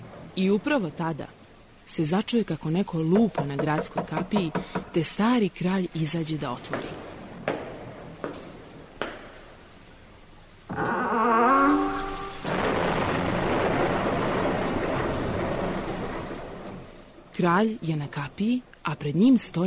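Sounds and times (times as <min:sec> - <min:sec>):
heavy pouring rain: 0:00.0 - 0:04.9, 0:06.5 - 0:19.6
speech: 0:00.4 - 0:07.1, 0:17.4 - 0:19.6
thunder: 0:11.7 - 0:16.9.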